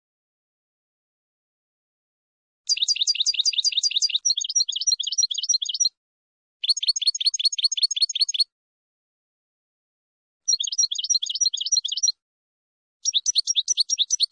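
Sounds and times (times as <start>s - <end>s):
finch song: 2.7s - 6.0s, 6.6s - 8.5s, 10.5s - 12.2s, 13.0s - 14.3s.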